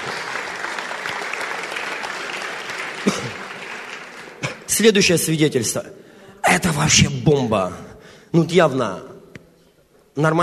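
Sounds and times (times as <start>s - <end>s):
audience applause: 0.0s - 4.8s
speech: 3.0s - 3.4s, 4.8s - 6.0s, 6.6s - 9.1s, 10.2s - 10.4s.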